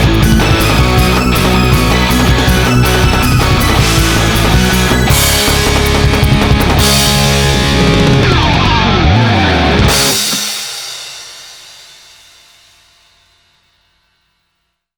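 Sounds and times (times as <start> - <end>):
instrumental music: 0.0 - 11.3.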